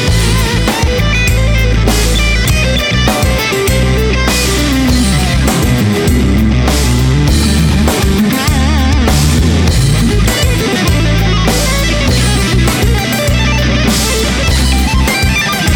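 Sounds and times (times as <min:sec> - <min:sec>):
drums: 0:00.0 - 0:15.7.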